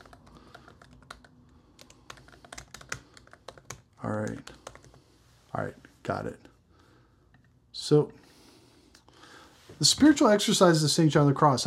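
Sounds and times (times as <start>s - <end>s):
typing on a computer keyboard: 0.0s - 5.0s
speech: 4.0s - 4.6s, 5.5s - 6.5s, 7.9s - 8.2s, 9.8s - 11.6s.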